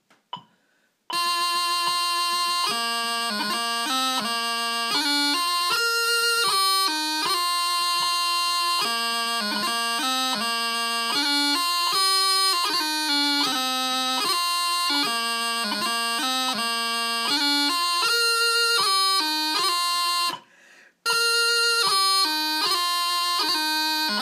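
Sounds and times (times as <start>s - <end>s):
pipers playing bagpipes at a wedding: 1.1s - 20.4s, 21.1s - 24.2s.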